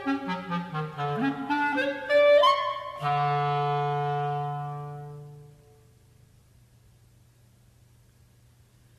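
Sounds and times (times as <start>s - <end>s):
solo clarinet playing allegro con spirito: 0.0s - 6.0s.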